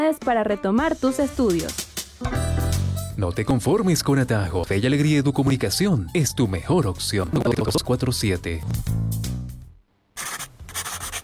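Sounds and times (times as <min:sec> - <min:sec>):
speech: 0:00.1 - 0:02.4, 0:03.2 - 0:09.0
pen scratching over paper sheets finishing a draft: 0:10.2 - 0:11.2.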